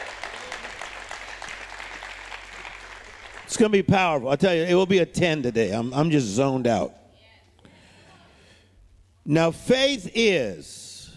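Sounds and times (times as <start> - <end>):
audience clapping hands: 0.0 - 4.2
speech: 3.5 - 7.0, 9.3 - 10.8.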